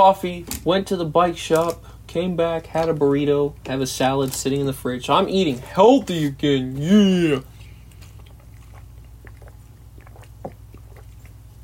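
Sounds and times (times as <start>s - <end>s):
speech: 0.0s - 7.5s
person drinking water: 6.8s - 11.6s.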